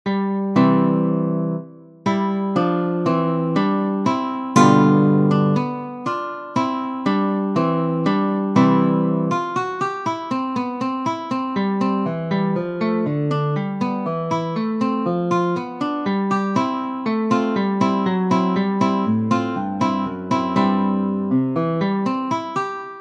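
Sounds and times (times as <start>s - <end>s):
allegretto guitar piece: 0.1s - 22.9s.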